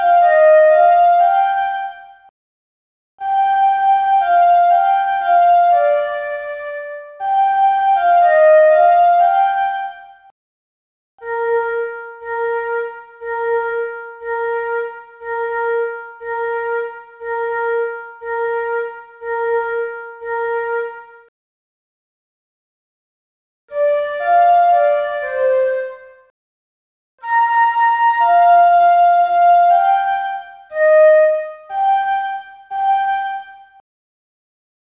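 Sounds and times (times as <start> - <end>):
flute melody: 0.0 - 2.0, 3.2 - 10.1, 11.2 - 21.3, 23.7 - 26.3, 27.2 - 33.8.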